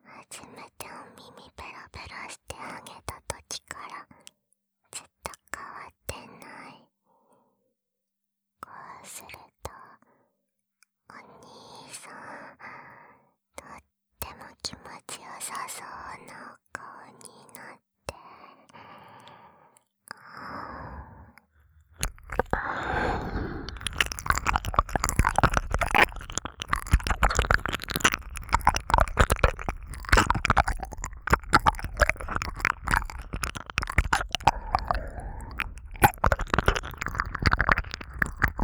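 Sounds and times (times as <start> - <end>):
ASMR ear licking sounds: 20.6 - 38.6.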